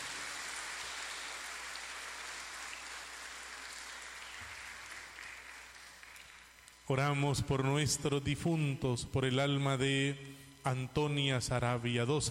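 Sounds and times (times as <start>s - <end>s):
audience applause: 0.0s - 6.7s
speech: 6.9s - 12.2s.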